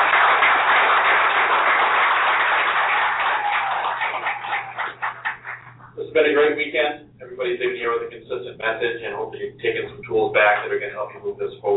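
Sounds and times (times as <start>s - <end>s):
audience applause: 0.0s - 6.0s
speech: 6.6s - 11.7s.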